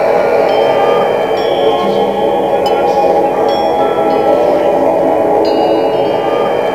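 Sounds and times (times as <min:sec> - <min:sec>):
voice on F#3: 0:00.0 - 0:06.7.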